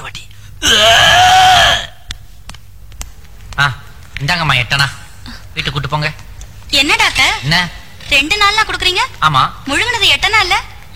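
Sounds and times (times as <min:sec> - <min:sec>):
voice imitating vomiting: 0:00.6 - 0:02.0
speech: 0:04.3 - 0:05.0, 0:05.6 - 0:10.9.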